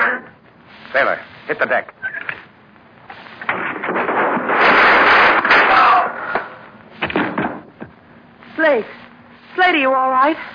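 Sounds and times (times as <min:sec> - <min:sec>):
speech: 0:00.9 - 0:02.0, 0:09.8 - 0:10.5
gunshots: 0:03.5 - 0:07.5.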